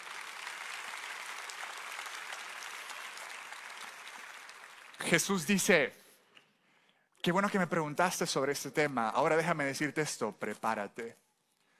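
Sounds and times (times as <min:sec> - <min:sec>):
audience applause: 0:00.0 - 0:05.6
speech: 0:05.0 - 0:06.0, 0:07.2 - 0:11.2.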